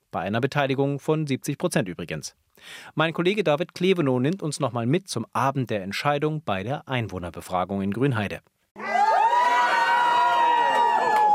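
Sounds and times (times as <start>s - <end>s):
speech: 0.1s - 8.9s
crowd cheering after vote count: 8.8s - 11.3s.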